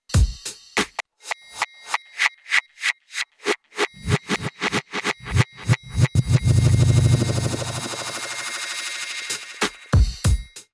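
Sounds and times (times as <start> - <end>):
reversed delay loop: 1.9 - 10.0.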